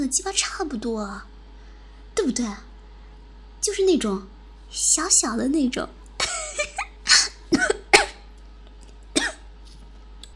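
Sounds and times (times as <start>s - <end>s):
speech: 0.0s - 1.3s, 2.2s - 2.7s, 3.6s - 6.0s
harsh coughing from choking on saliva: 6.2s - 8.3s, 9.2s - 9.4s.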